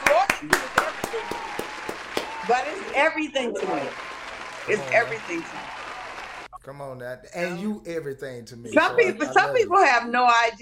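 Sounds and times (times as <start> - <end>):
audience applause: 0.0 - 6.5
speech: 0.4 - 0.6, 2.5 - 4.1, 4.7 - 5.8, 6.6 - 10.6
laughter: 2.5 - 6.0, 6.7 - 10.0.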